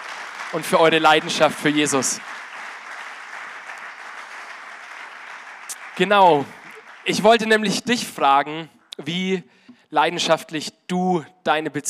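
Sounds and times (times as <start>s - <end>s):
audience applause: 0.0s - 7.7s
speech: 0.5s - 2.4s, 6.0s - 11.8s.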